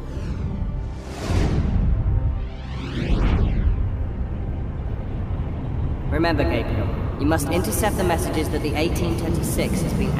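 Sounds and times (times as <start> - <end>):
magical portal opening with whooshing surges: 0.0 - 5.4
deep rumble of magical portal: 0.0 - 10.1
speech: 6.2 - 10.1.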